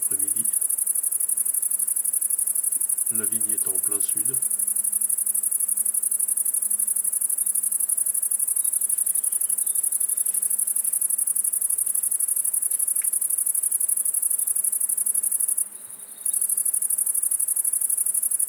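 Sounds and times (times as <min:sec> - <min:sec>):
Great Green Bush-cricket song: 0:00.0 - 0:18.4
speech: 0:00.1 - 0:00.7, 0:03.1 - 0:04.6.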